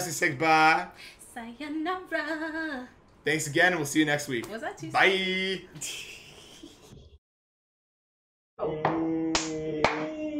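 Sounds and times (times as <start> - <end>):
speech: 0.0 - 6.2, 8.6 - 9.7
sharp hand claps: 8.9 - 10.2.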